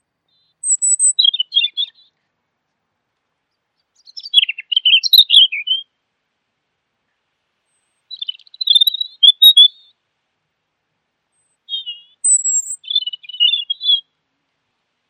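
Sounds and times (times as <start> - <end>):
bird song with twittering and chirps: 0.3 - 2.1, 4.0 - 5.8, 7.7 - 9.7, 11.7 - 14.0.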